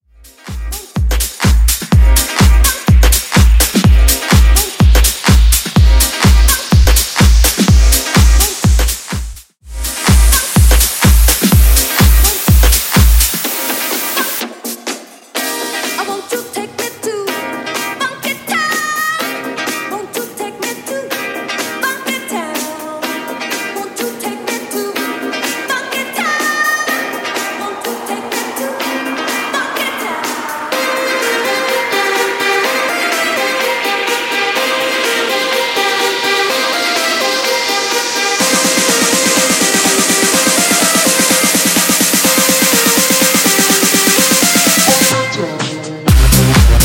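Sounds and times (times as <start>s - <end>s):
remix music: 0.0s - 46.8s.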